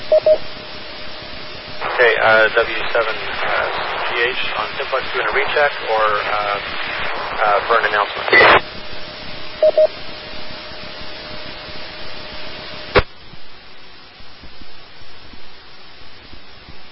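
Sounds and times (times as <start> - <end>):
short beeps: 0.0 - 0.4, 9.6 - 10.0
hiss of static from two radio transmissions doubling: 0.0 - 16.9
steady whining tone: 0.0 - 16.9
speech: 2.2 - 8.6, 9.6 - 10.1.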